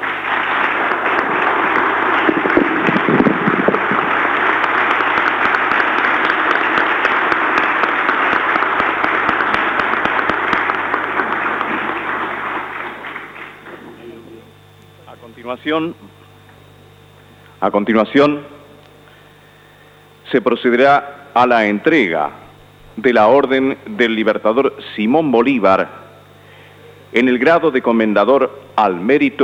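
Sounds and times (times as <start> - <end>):
large audience applause: 0.0 - 14.2
speech: 15.5 - 16.0, 17.6 - 18.5, 20.3 - 22.4, 23.0 - 26.0, 27.1 - 29.4.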